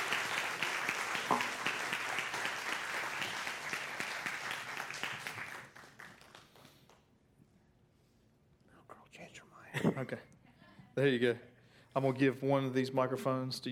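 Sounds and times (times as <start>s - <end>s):
audience applause: 0.0s - 6.8s
speech: 10.0s - 10.3s, 11.0s - 13.6s.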